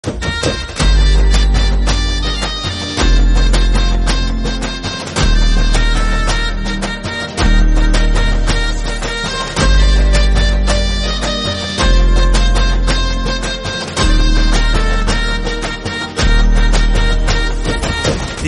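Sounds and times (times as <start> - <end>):
instrumental music: 0.0 - 18.4.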